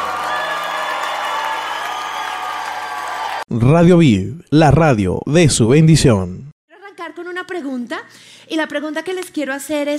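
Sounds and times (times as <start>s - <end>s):
audience applause and cheering: 0.0s - 3.5s
speech: 3.5s - 9.9s.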